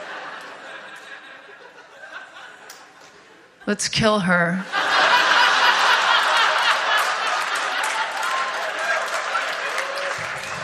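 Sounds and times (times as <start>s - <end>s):
laughter: 0.0s - 3.4s, 4.6s - 8.5s
speech: 3.6s - 4.8s
audience clapping: 5.6s - 10.6s.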